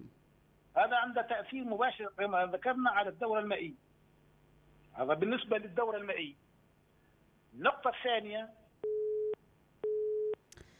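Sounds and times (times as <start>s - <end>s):
speech: 0.8s - 3.9s, 5.0s - 6.4s, 7.5s - 8.6s
telephone busy tone after a dropped phone call: 8.8s - 10.4s.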